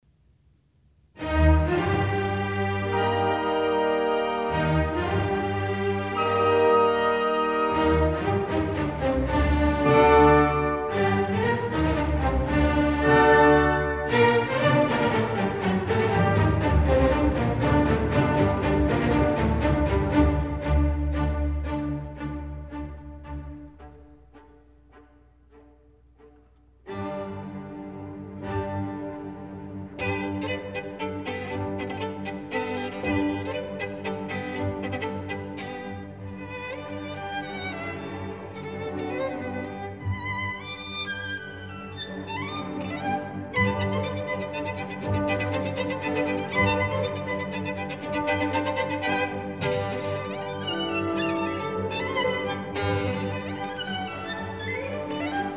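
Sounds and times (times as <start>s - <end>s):
violin and orchestra: 1.2s - 55.5s.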